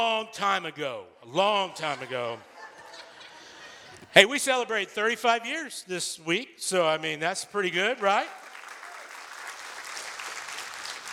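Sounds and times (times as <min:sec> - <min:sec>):
speech: 0:00.0 - 0:02.5, 0:04.1 - 0:08.4
laughter: 0:01.8 - 0:04.1
audience applause: 0:07.8 - 0:11.1.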